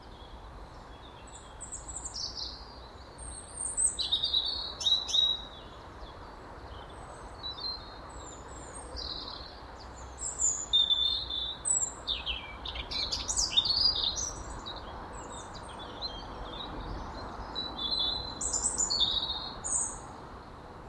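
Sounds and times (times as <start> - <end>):
European robin singing: 0.0 - 20.6.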